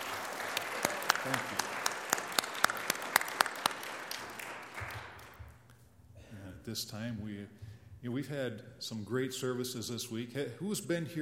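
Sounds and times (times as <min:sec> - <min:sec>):
audience applause: 0:00.0 - 0:05.4
speech: 0:01.2 - 0:01.7, 0:06.7 - 0:11.2.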